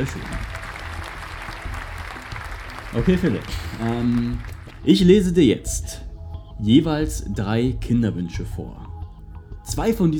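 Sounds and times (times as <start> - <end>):
speech: 0.0 - 0.5, 2.9 - 6.0, 6.6 - 8.8, 9.7 - 10.1
audience applause: 0.0 - 4.8.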